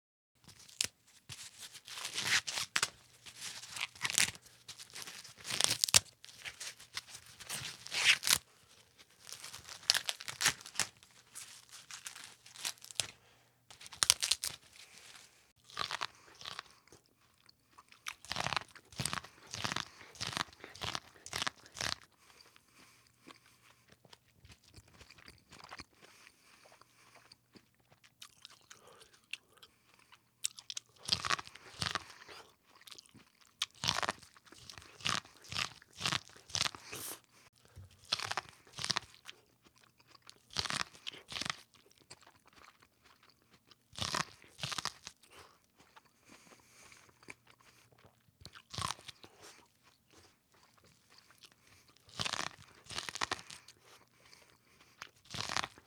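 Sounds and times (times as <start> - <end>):
peeling corn: 0.5 - 16.7, 18.2 - 22.1, 33.6 - 39.4, 51.7 - 55.8
eating corn: 0.5 - 55.8.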